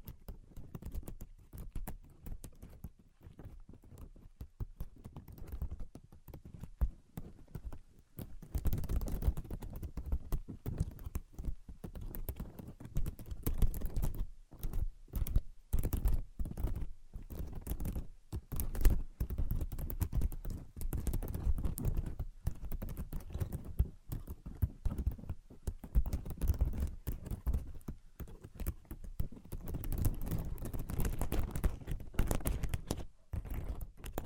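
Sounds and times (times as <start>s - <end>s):
rapid fingers tapping on a hard surface: 8.5s - 34.2s.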